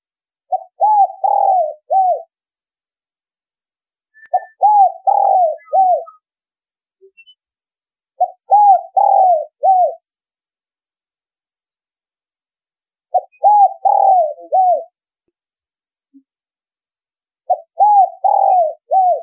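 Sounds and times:
spotted dove cooing: 0.5s - 2.3s, 4.3s - 6.2s, 8.2s - 10.0s, 13.1s - 15.0s, 17.5s - 19.2s.

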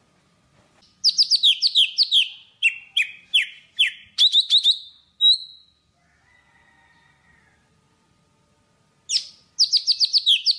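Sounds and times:
Java sparrow song: 0.8s - 5.8s, 9.1s - 10.5s.

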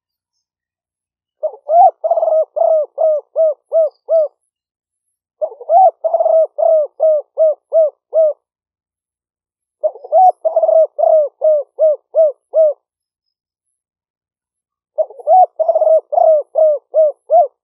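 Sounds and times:
spotted dove cooing: 1.4s - 4.4s, 5.4s - 8.4s, 9.8s - 12.9s, 15.0s - 17.6s.

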